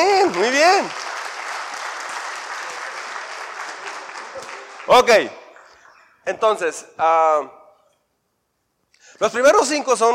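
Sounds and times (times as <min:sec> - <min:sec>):
audience applause: 0:00.0 - 0:06.2
speech: 0:00.8 - 0:01.0, 0:04.9 - 0:05.4, 0:06.3 - 0:07.6, 0:09.2 - 0:10.1.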